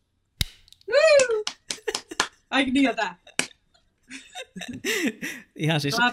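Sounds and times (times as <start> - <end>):
laughter: 1.2 - 2.4, 4.1 - 6.1
single hand clap as editing sync mark: 1.2 - 2.4
speech: 2.5 - 3.2, 4.1 - 6.1.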